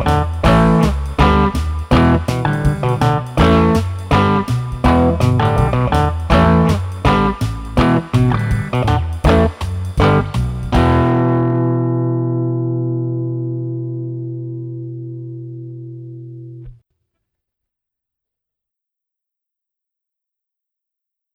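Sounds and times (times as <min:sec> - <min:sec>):
clean guitar: 0:00.0 - 0:16.8.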